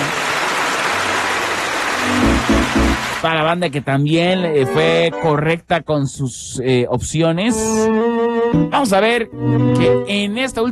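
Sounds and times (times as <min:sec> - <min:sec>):
applause: 0:00.0 - 0:03.5
speech: 0:03.2 - 0:10.6.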